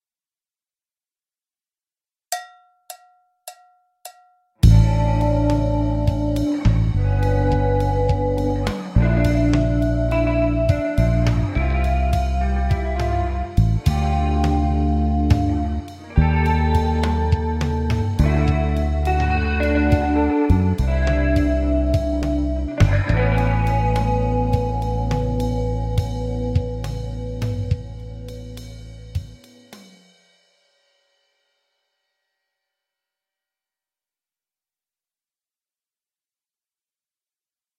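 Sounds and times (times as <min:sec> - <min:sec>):
jazz rock music: 0:04.6 - 0:29.9.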